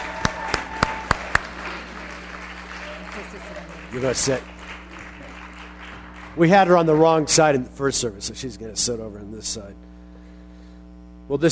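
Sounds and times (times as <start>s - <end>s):
church congregation clapping in welcome: 0.0s - 7.1s
low steady hum: 0.0s - 11.4s
speech: 3.9s - 4.6s, 6.4s - 9.9s, 11.3s - 11.4s.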